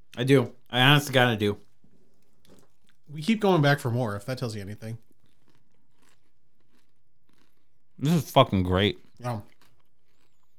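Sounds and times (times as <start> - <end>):
soft chewing: 0.0 - 10.5
speech: 0.1 - 1.7, 3.1 - 5.0, 8.0 - 9.5
crunching on maple-drizzled popcorn: 4.8 - 10.5.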